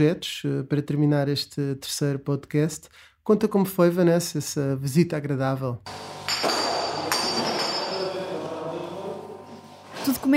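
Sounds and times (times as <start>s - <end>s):
speech: 0.0s - 6.6s, 10.0s - 10.3s
bottles clinking as gin is bottled: 6.3s - 8.5s.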